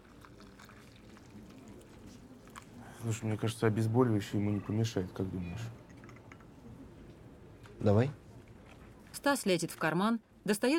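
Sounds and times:
coffee being poured into a cup: 0.0s - 6.6s
speech: 3.0s - 5.8s, 7.8s - 8.2s, 9.2s - 10.7s.

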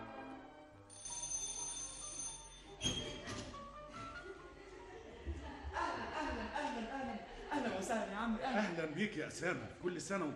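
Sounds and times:
doorbell ringing: 0.9s - 2.8s
laughter: 4.2s - 9.6s
speech: 9.0s - 10.3s.

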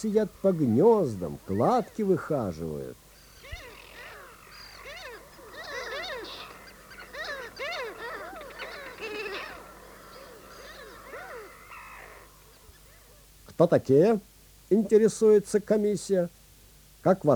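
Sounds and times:
speech: 0.0s - 3.0s, 13.6s - 16.4s, 17.0s - 17.3s
colony of gulls and terns calling while nesting on small islands: 0.0s - 13.4s.

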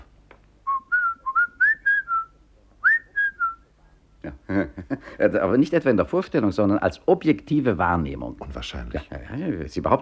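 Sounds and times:
person whistling a tune: 0.7s - 3.6s
speech: 4.5s - 9.9s.

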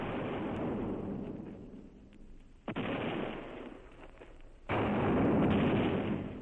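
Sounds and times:
cannon and rocket fire: 0.0s - 1.6s, 2.6s - 3.9s, 4.7s - 6.4s.

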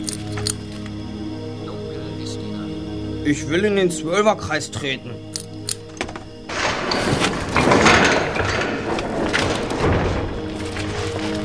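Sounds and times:
speech: 3.2s - 5.3s
heavy gate grinding open: 5.7s - 11.4s.

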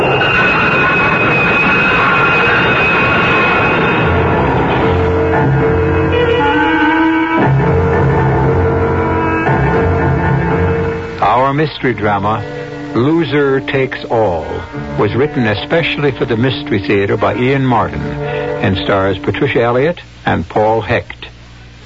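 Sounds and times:
onrushing train: 0.0s - 11.2s
speech: 11.6s - 21.2s.

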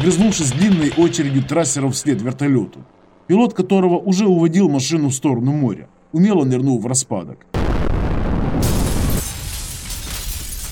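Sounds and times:
speech: 0.0s - 7.7s
loud explosion at a school building: 7.6s - 10.6s
hissing crackling debris from explosion: 8.6s - 10.6s.

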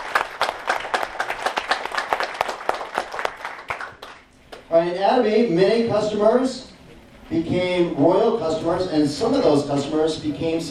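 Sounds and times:
audience applause at an Atomy corporate event for the company chairman: 0.0s - 4.2s
speech: 4.7s - 6.7s, 7.3s - 10.6s.

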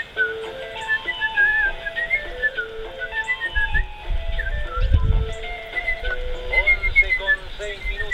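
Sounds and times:
person whistling a wandering melody: 0.2s - 8.1s.

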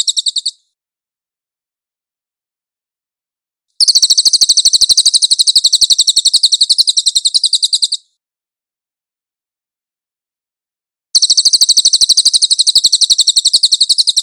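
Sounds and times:
cililin trilling: 0.0s - 0.6s, 3.8s - 8.0s, 11.2s - 14.2s.

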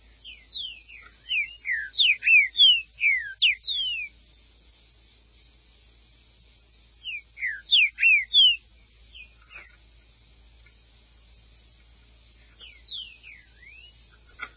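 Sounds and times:
green-winged saltator song: 0.1s - 4.3s, 6.7s - 9.7s, 12.4s - 14.2s.

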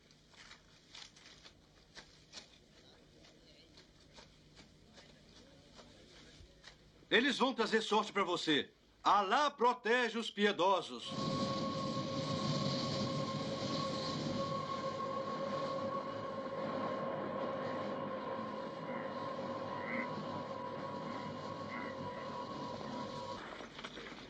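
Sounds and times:
speech: 7.1s - 11.4s
sustained humming tones: 11.0s - 23.9s
train rolling along the railway: 11.0s - 24.2s.

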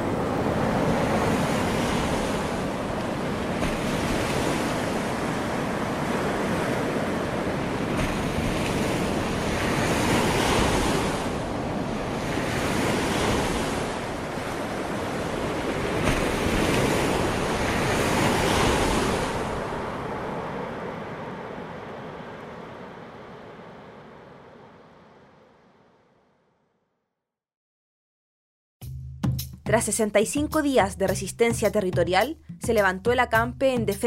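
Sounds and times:
ocean surf breaking at a dangerous high tide: 0.0s - 26.4s
wind: 0.0s - 26.6s
speech: 29.7s - 34.0s.

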